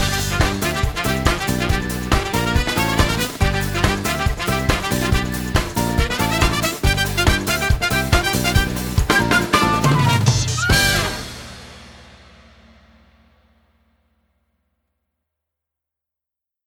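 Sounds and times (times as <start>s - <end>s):
theme music with flute solo: 0.0s - 11.8s.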